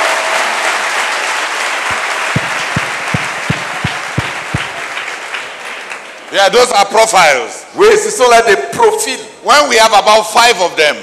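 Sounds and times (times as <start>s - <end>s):
audience clapping: 0.0s - 6.4s
speech: 6.3s - 11.0s.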